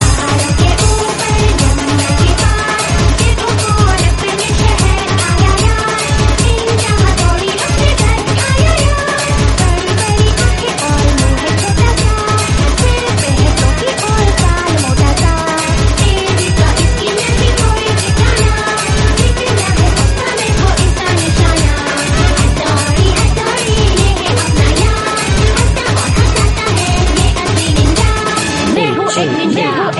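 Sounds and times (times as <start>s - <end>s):
theme song in Hindi: 0.0s - 29.9s.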